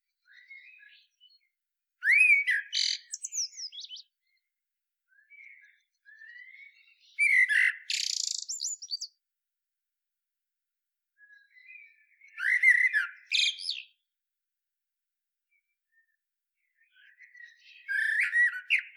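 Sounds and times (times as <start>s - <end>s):
common blackbird singing: 0.2s - 4.4s, 5.1s - 9.2s, 11.2s - 14.0s, 16.7s - 18.9s.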